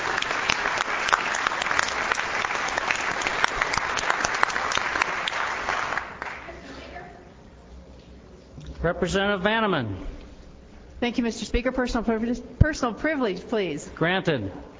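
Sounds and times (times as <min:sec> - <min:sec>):
audience applause: 0:00.0 - 0:06.6
speech: 0:08.8 - 0:10.2, 0:11.0 - 0:14.7.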